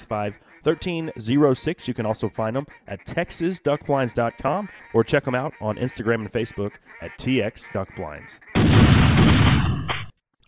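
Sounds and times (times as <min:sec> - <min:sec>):
speech: 0:00.1 - 0:09.3
over-under shotgun shots: 0:08.6 - 0:10.1.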